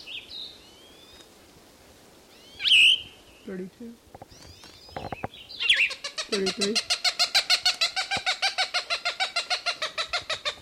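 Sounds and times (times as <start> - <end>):
speech: 3.5 - 4.2, 6.3 - 7.0
Cooper's Hawk calling excitedly near its nest: 4.2 - 10.6.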